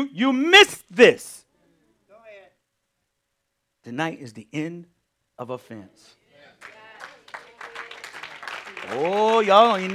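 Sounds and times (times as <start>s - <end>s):
speech: 0.0s - 1.4s, 3.8s - 6.8s, 8.8s - 9.9s
audience clapping: 6.6s - 9.9s.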